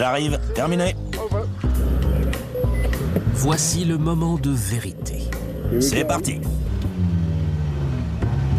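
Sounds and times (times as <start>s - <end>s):
speech: 0.0s - 1.1s, 3.4s - 6.6s
old car engine idling: 1.7s - 8.5s.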